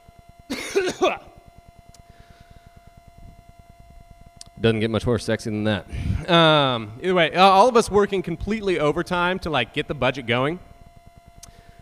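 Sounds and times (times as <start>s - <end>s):
faint low hum: 0.0s - 11.8s
raspy throat clearing cough: 0.5s - 1.4s
speech: 0.8s - 1.3s, 4.6s - 10.7s.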